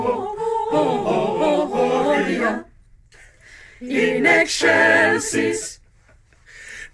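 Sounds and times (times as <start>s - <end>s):
English chamber choir singing: 0.0s - 2.7s, 3.8s - 5.8s.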